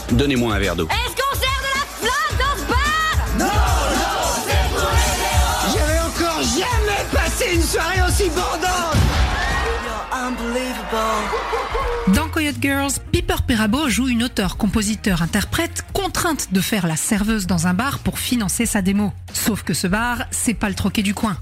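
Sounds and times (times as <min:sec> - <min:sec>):
speech: 0:00.1 - 0:01.2, 0:10.1 - 0:21.3
large crowd cheering: 0:01.8 - 0:12.5
whoops and yells: 0:09.2 - 0:12.1
crowd laughing: 0:09.2 - 0:12.3.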